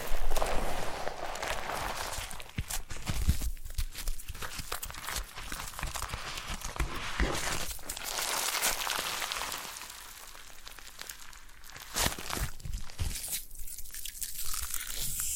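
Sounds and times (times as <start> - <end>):
foam being squeezed and rubbed: 0.0 - 15.3.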